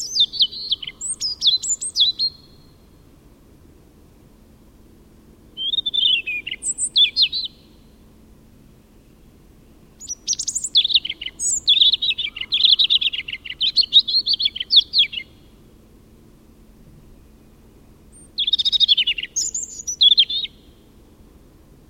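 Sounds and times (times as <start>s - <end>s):
European robin song: 0.0s - 3.2s, 5.4s - 21.2s.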